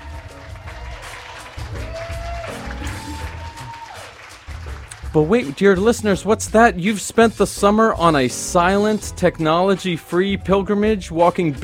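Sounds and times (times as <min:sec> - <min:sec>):
crowd noise: 0:00.0 - 0:04.0
round of applause: 0:00.0 - 0:05.8
speech: 0:05.2 - 0:11.6.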